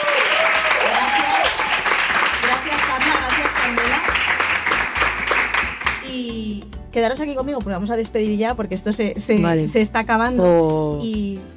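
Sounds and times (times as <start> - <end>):
voices and cheering: 0.0 - 1.9
crowd applauding: 0.0 - 6.1
speech: 7.0 - 11.5.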